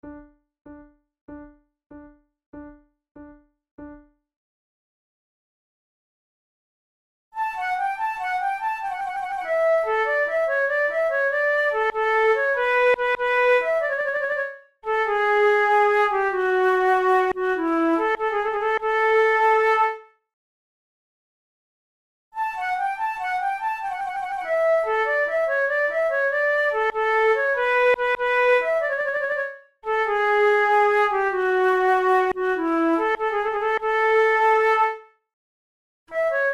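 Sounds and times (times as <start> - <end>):
flute playing a gigue: 7.4 - 20.1, 22.4 - 35.2, 36.1 - 36.5.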